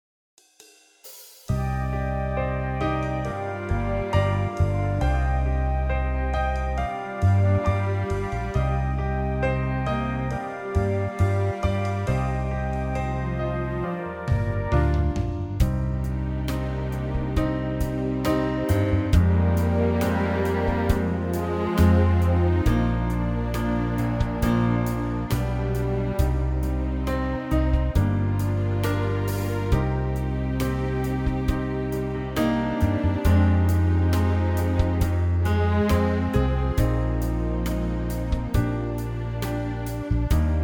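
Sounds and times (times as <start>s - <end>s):
backing track in C minor for male vocals: 1.5s - 40.6s.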